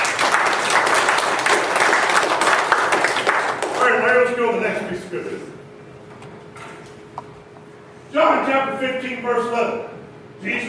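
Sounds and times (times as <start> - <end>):
audience applause: 0.0 - 4.0
speech: 4.2 - 5.6, 8.1 - 10.6.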